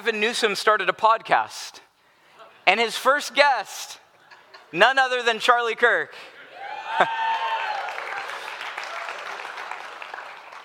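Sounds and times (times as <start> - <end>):
speech: 0.0 - 1.8, 2.7 - 4.0, 4.7 - 6.3, 6.9 - 7.2
audience clapping: 7.0 - 10.6.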